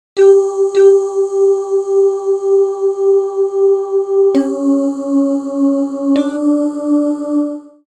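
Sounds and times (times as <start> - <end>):
barbershop tags singing: 0.2 - 7.8.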